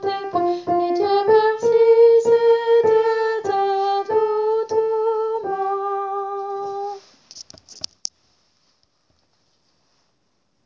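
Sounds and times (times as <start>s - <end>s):
girl singing tenor: 0.0s - 7.0s.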